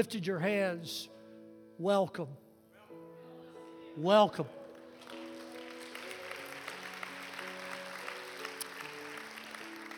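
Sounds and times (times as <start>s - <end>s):
speech: 0.0s - 1.2s, 1.8s - 2.4s, 4.0s - 4.6s
audience clapping: 4.6s - 9.9s.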